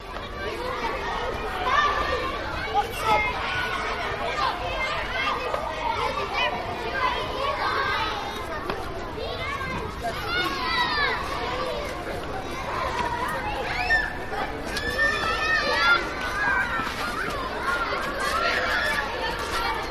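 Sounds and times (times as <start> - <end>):
children playing: 0.0 - 19.8.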